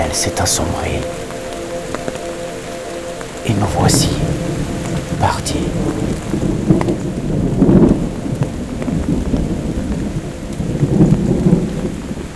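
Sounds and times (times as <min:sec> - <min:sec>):
speech: 0:00.0 - 0:01.3, 0:03.5 - 0:07.8
steady hiss of falling rain: 0:00.0 - 0:12.3
deep rolling thunder in a nearby storm: 0:05.8 - 0:12.3.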